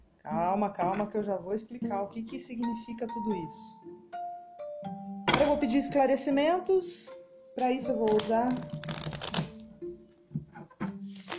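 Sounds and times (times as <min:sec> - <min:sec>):
speech: 0:00.3 - 0:04.0, 0:05.6 - 0:09.0
tarot cards from a Gilded Royal deck shuffled and laid out: 0:08.0 - 0:09.6, 0:11.0 - 0:11.3.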